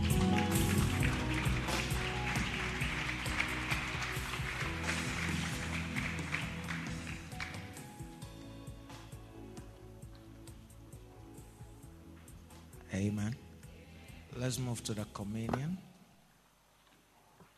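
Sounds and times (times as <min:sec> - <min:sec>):
audience applause: 0:00.0 - 0:08.1
speech: 0:14.5 - 0:15.9.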